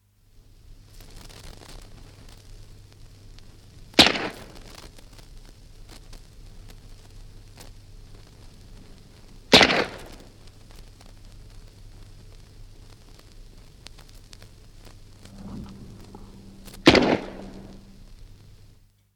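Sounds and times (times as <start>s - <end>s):
Bren gun single shots from a 78 disc: 9.6s - 10.1s, 16.8s - 17.7s.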